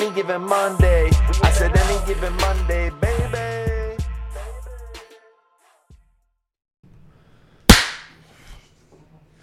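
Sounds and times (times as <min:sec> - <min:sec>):
speech: 0:00.2 - 0:03.1
loud hand clap: 0:07.7 - 0:08.2.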